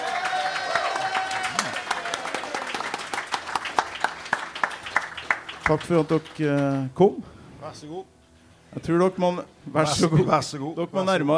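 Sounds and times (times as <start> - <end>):
audience applause: 0.0 - 6.4
speech: 5.7 - 11.3.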